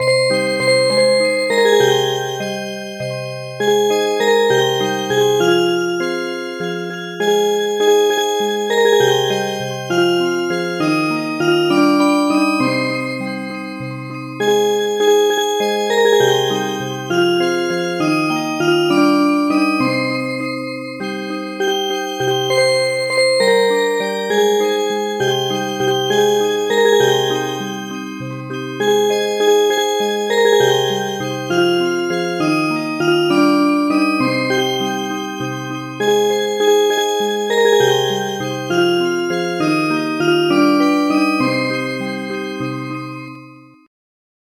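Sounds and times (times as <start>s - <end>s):
MIDI music box melody: 0.0s - 43.5s.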